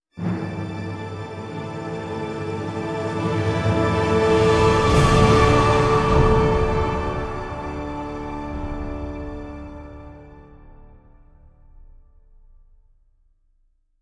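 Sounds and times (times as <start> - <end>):
triumphant music: 0.2 - 11.2.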